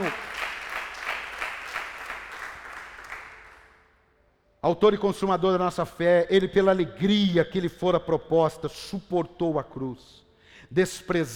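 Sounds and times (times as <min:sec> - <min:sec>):
audience applauding: 0:00.0 - 0:03.8
speech: 0:04.6 - 0:11.3.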